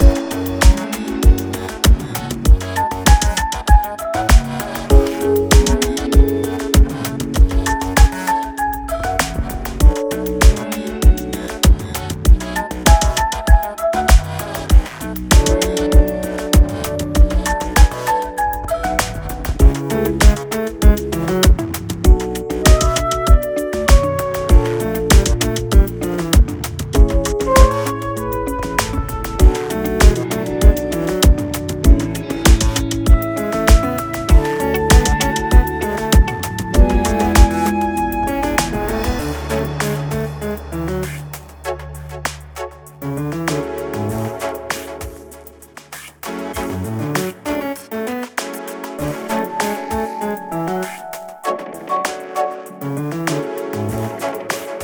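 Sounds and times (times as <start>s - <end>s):
holiday music loop: 0.0s - 8.8s, 9.4s - 45.8s, 48.8s - 54.8s.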